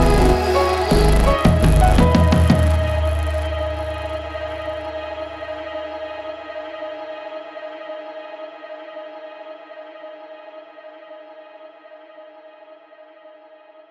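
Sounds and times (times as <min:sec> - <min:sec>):
loud film music mix: 0:00.0 - 0:07.6.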